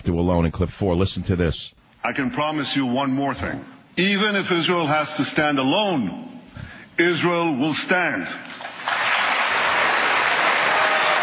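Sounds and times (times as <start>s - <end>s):
speech: 0.1s - 6.4s, 7.0s - 9.0s
large audience applause: 8.6s - 11.2s.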